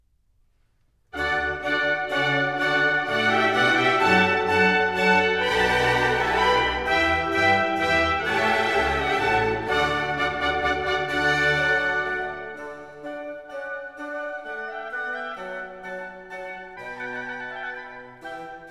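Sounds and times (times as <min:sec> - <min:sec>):
minuet: 0:01.1 - 0:18.6.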